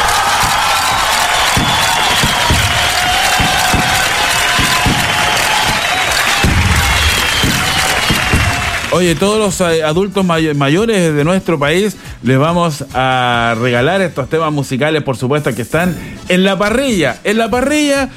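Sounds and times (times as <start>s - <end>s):
audience applause: 0.0s - 9.4s
speech: 9.0s - 18.1s.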